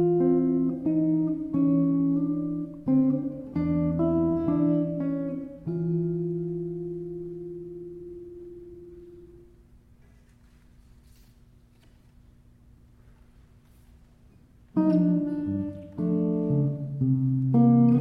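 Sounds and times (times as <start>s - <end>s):
electric blues shuffle: 0.0s - 9.5s, 14.6s - 18.0s.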